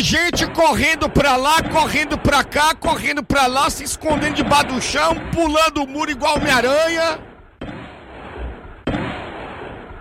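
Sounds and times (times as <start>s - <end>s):
speech: 0.0s - 7.3s
gunshots during a police operation in a residential area: 0.0s - 9.9s.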